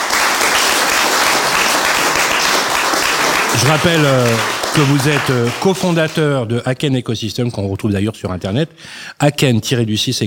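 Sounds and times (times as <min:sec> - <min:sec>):
audience applause: 0:00.0 - 0:06.3
speech: 0:03.6 - 0:10.2.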